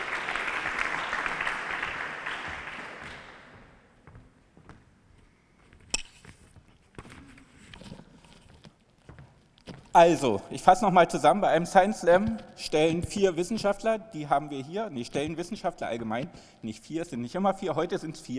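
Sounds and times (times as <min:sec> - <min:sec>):
audience applause: 0:00.0 - 0:03.7
speech: 0:10.0 - 0:18.3.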